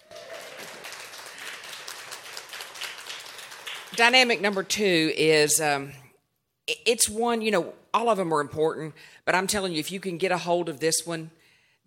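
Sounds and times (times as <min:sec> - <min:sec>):
audience hand clapping: 0:00.0 - 0:05.0
speech: 0:03.9 - 0:06.0, 0:06.9 - 0:11.8.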